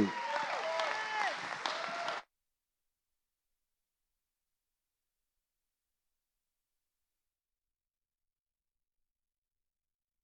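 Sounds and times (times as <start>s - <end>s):
audience applause welcoming a speaker to the stage: 0.0s - 2.2s
voices rising above clapping: 0.0s - 2.3s.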